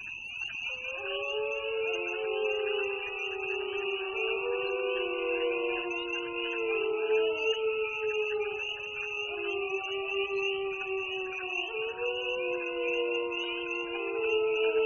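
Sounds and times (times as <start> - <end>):
wolves howling in chorus: 0.6 - 14.8.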